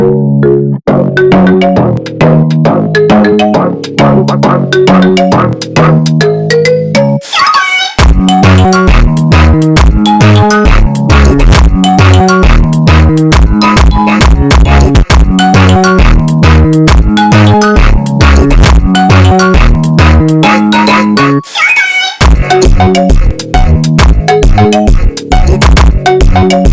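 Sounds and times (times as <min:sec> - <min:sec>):
Brazilian phonk music: 0:00.1 - 0:26.7.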